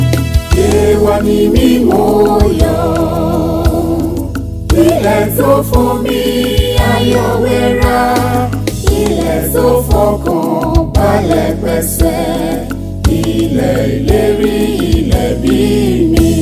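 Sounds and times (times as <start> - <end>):
choir singing an anthem: 0.2 - 16.4.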